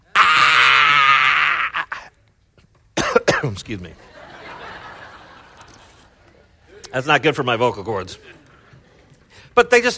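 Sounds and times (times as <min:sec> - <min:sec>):
single voice imitating a primal scream: 0:00.1 - 0:02.1
speech: 0:03.4 - 0:04.1, 0:06.9 - 0:08.4, 0:09.6 - 0:09.9
laughter: 0:03.9 - 0:07.3.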